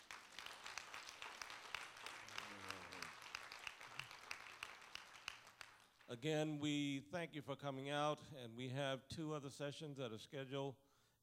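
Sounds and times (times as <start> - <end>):
audience applause: 0.0 - 6.0
speech: 6.1 - 10.8.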